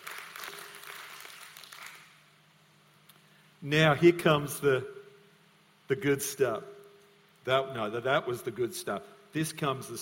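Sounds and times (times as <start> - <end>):
audience hand clapping: 0.0 - 2.3
speech: 3.6 - 5.0, 5.9 - 6.8, 7.4 - 10.0.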